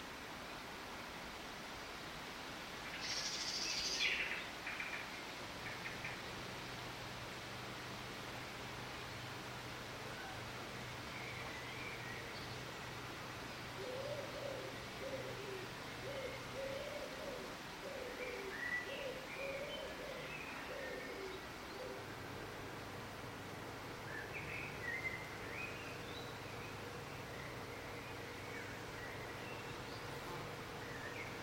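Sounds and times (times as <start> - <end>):
steady background hum: 0.0 - 31.4
bird cooing: 13.8 - 22.1.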